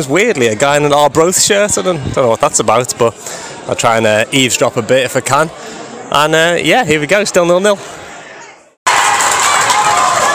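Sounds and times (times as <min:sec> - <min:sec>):
speech: 0:00.0 - 0:08.0
football crowd cheering: 0:08.3 - 0:10.3.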